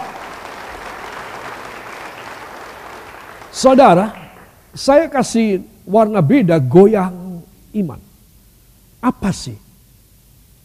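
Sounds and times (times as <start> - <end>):
audience applauding loudly: 0.0 - 4.6
speech: 3.6 - 4.2, 4.8 - 8.0, 9.0 - 9.6.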